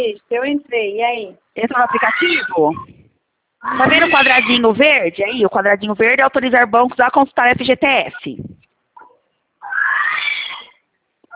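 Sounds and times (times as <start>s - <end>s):
speech: 0.0s - 3.0s, 3.6s - 8.6s
parrot squawking: 1.7s - 3.0s, 3.6s - 4.7s, 9.0s - 11.3s.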